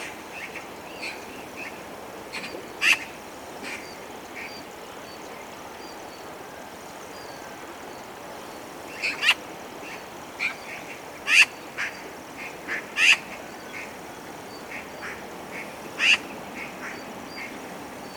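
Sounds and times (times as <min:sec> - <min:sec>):
Eurasian magpie harsh calls: 0:09.0 - 0:09.4, 0:11.2 - 0:13.3, 0:15.0 - 0:17.0.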